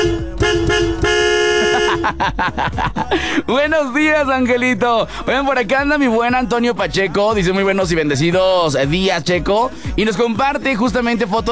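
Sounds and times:
car horn honking: 0.0s - 2.2s
laughter: 1.6s - 3.5s
speech: 3.5s - 11.4s.

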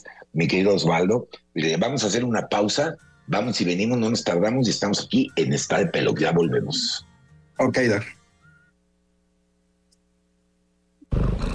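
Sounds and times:
speech: 0.0s - 8.2s
cat purring: 11.0s - 11.5s.

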